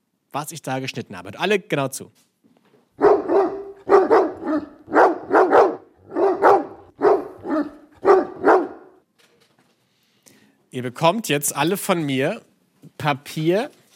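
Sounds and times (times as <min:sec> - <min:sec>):
speech: 0:00.3 - 0:02.3, 0:10.8 - 0:13.8
dog barking: 0:03.0 - 0:09.0.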